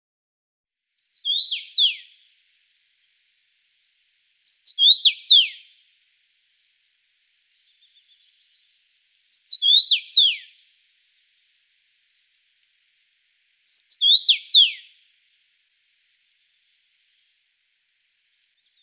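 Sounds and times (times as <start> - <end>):
common rosefinch whistled song: 0.9 - 2.2, 4.4 - 5.8, 7.6 - 10.6, 13.6 - 15.0, 18.6 - 18.8.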